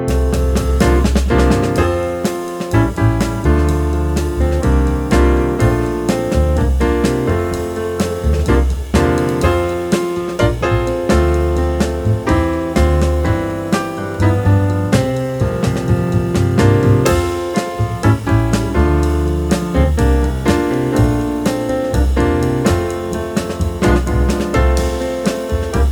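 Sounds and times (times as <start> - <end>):
jazz trio playing: 0.1 - 25.9.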